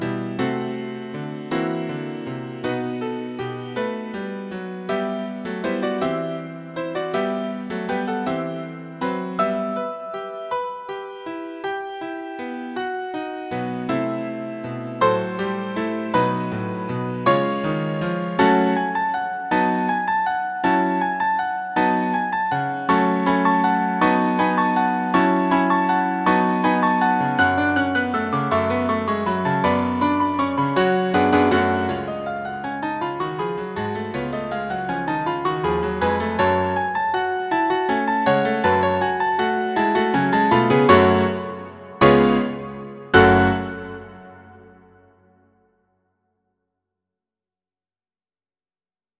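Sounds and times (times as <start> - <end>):
piano duet playing a carol: 0.0 - 45.1.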